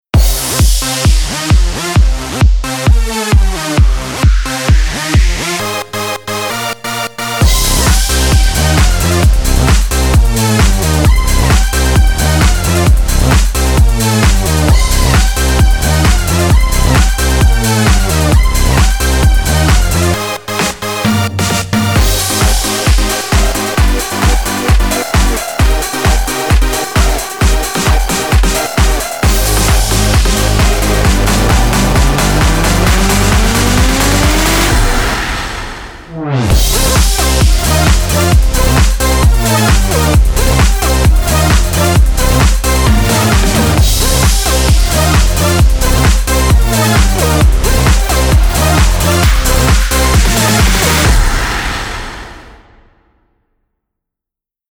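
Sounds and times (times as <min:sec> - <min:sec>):
electronic dance music: 0:00.0 - 0:52.9.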